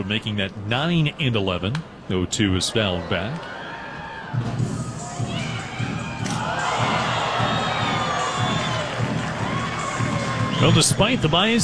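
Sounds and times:
speech: 0.0 - 3.6, 4.3 - 4.6, 10.6 - 11.6
fans cheering in the stands: 2.6 - 11.6.

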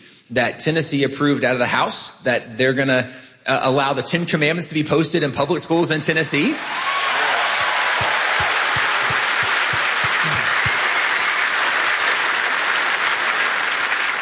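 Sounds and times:
speech: 0.3 - 7.0
crowd applauding: 6.6 - 14.2
low rhythmic thumps: 7.6 - 10.8.

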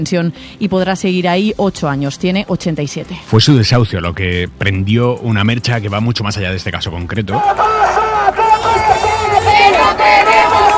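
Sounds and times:
speech: 0.0 - 8.8
housing protest crowd chanting in Málaga: 7.4 - 10.7.

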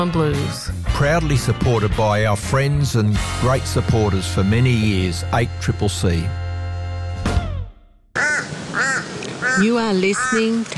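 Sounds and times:
speech: 0.0 - 6.4, 9.6 - 10.7
sustained musical chord in station jingle: 3.0 - 7.7
crow cawing in station jingle: 8.2 - 10.7.

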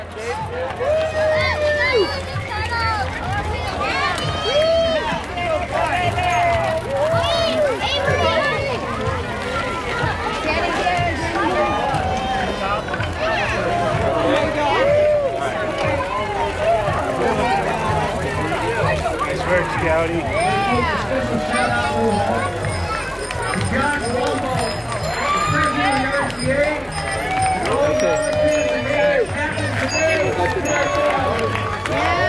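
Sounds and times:
crowd hubbub at a 4th of July bike parade in Redstone: 0.0 - 32.2.

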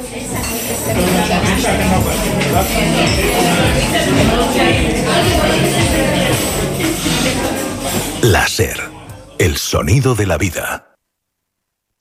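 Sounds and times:
murmur of many voices in a cafeteria in Zaragoza: 0.0 - 10.8
speech: 0.1 - 6.2, 9.5 - 10.9
cutlery and dishes clinking in a cafeteria in Zaragoza: 0.3 - 8.2.

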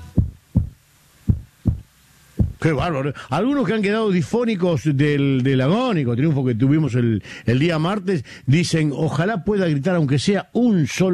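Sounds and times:
heartbeat: 0.0 - 2.6
speech: 2.6 - 11.1.

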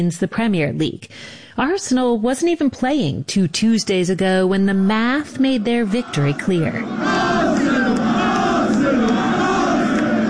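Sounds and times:
speech: 0.0 - 7.6
football fans cheering and chanting in celebration: 5.3 - 10.2.

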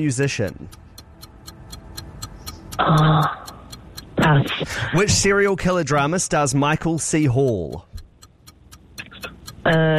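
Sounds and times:
speech: 0.0 - 0.9, 2.8 - 3.4, 4.3 - 7.9, 9.6 - 9.9
quiz countdown clock ticking: 0.0 - 9.9.

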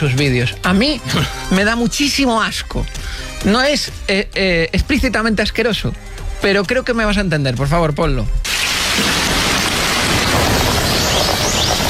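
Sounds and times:
speech: 0.0 - 8.5
running shower water: 8.5 - 11.8.

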